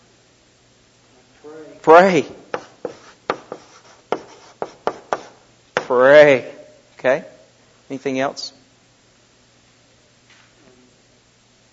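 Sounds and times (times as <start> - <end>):
speech: 1.4 - 2.4, 6.2 - 7.3, 7.9 - 8.6
handwriting with a pen: 2.6 - 5.9.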